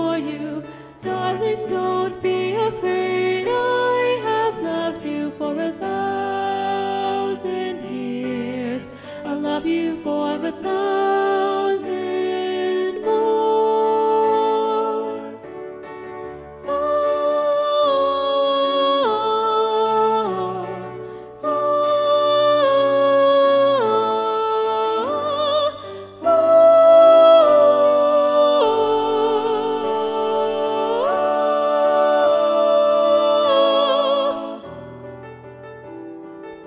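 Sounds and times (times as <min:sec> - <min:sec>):
soprano singing: 0:00.0 - 0:36.0.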